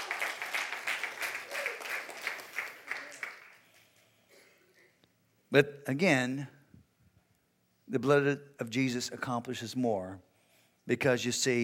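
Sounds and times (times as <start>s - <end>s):
audience clapping: 0.0s - 4.0s
speech: 5.5s - 6.6s, 7.9s - 10.3s, 10.9s - 11.6s.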